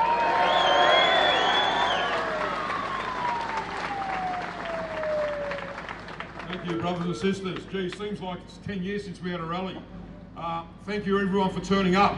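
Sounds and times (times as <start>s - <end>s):
rally crowd clapping for the CFMMEU Secretary at a wage-fairness rally: 0.0s - 8.1s
speech: 6.7s - 12.1s.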